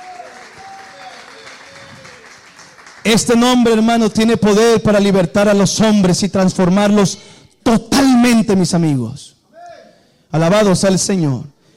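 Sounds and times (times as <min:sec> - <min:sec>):
audience clapping in praise: 0:00.0 - 0:03.6
speech: 0:03.1 - 0:09.3, 0:10.3 - 0:11.5.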